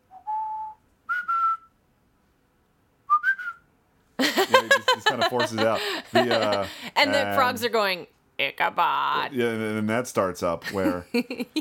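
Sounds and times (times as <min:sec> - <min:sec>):
person whistling a faltering tune: 0:00.0 - 0:01.8, 0:03.1 - 0:03.6
laughter: 0:04.2 - 0:07.6, 0:10.6 - 0:11.5
speech: 0:04.2 - 0:11.5.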